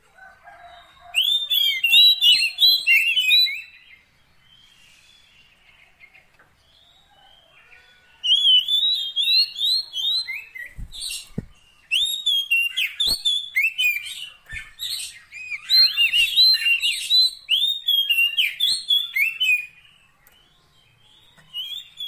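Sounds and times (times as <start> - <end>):
Oriental magpie-robin singing: 1.1 - 22.0.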